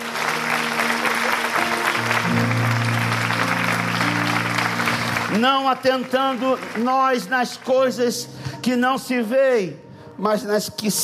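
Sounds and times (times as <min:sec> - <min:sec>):
audience applause: 0:00.0 - 0:08.2
speech: 0:05.4 - 0:11.0.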